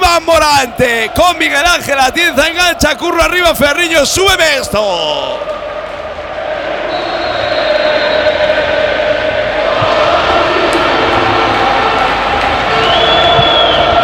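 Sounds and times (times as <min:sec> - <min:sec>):
huge football stadium crowd roaring at kickoff: 0:00.0 - 0:14.0
speech: 0:00.5 - 0:05.7
high whistle tones: 0:06.8 - 0:08.6, 0:12.7 - 0:14.0.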